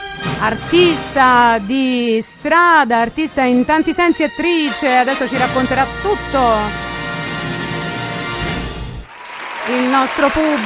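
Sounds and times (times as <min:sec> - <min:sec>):
speech: 0:00.4 - 0:06.8, 0:09.7 - 0:10.6
audience applauding: 0:09.0 - 0:10.6.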